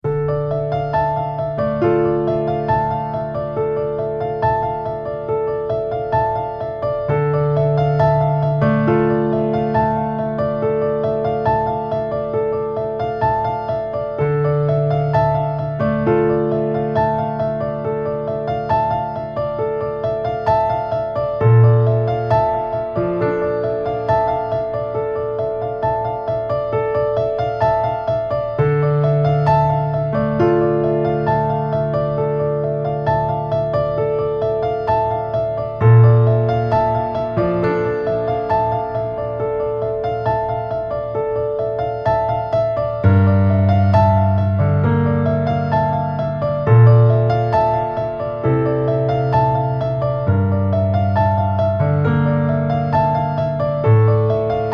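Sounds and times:
intimate piano: 0:00.0 - 0:54.7.

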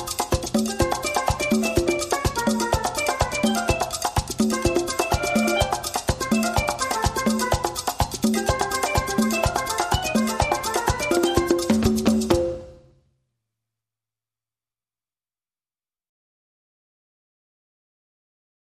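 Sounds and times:
calypso loop: 0:00.0 - 0:12.9.

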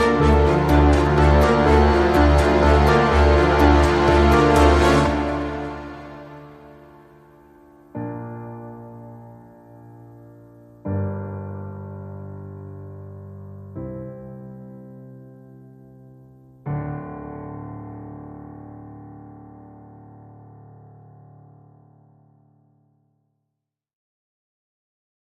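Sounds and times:
underscore music: 0:00.0 - 0:20.1.

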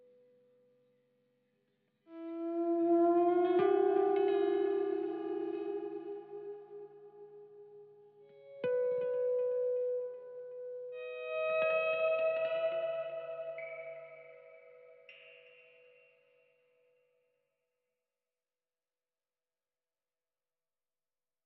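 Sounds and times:
guitar effects: 0:02.1 - 0:16.1.

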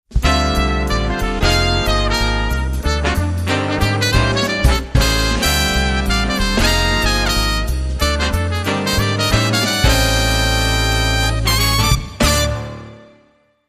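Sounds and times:
jazz brass: 0:00.1 - 0:13.4.

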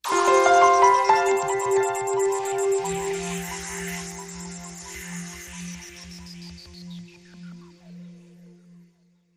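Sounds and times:
light smooth ident jingle: 0:00.0 - 0:05.4.

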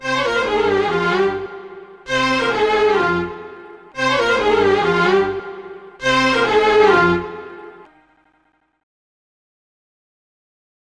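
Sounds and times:
Egyptian string instruments: 0:00.0 - 0:08.5.

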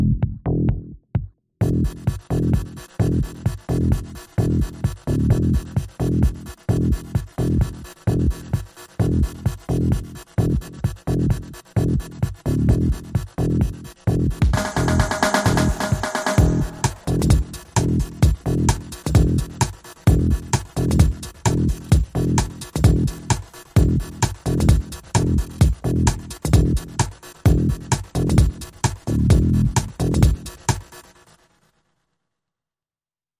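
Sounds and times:
steady pulsing drum and bass: 0:01.6 - 0:31.4.

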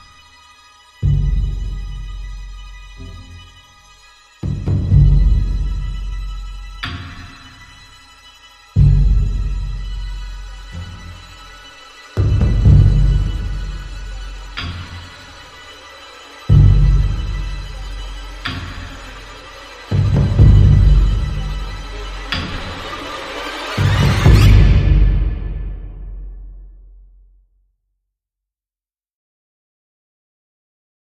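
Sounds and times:
drums: 0:01.0 - 0:03.1, 0:04.4 - 0:07.5, 0:08.8 - 0:11.3, 0:12.2 - 0:15.7, 0:16.4 - 0:26.7.

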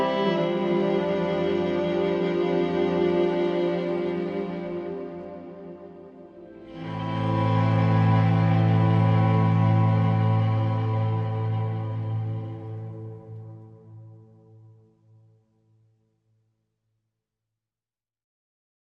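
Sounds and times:
synth pads: 0:00.0 - 0:14.6
strings: 0:00.0 - 0:14.7.

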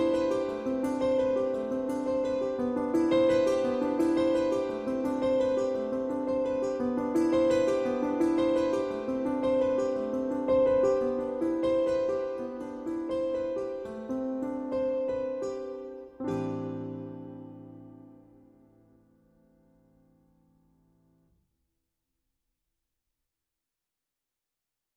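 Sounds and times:
dulcimer: 0:00.0 - 0:18.0
piano: 0:00.0 - 0:21.1.

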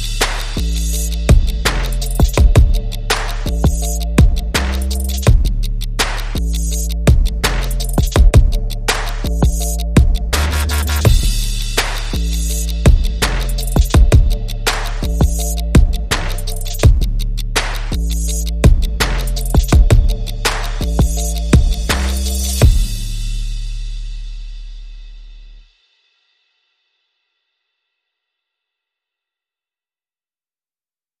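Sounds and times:
drums: 0:00.0 - 0:24.9
bass: 0:00.0 - 0:25.7.

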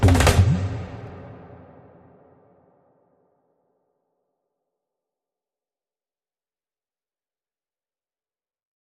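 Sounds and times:
drums: 0:00.0 - 0:02.0.

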